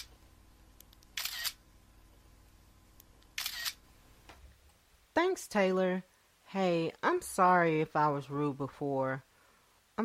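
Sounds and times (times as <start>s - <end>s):
quiet hiss: 0.0s - 10.0s
camera shutter clicks taking a group selfie: 1.2s - 1.6s, 3.4s - 3.8s
speech: 5.2s - 9.3s.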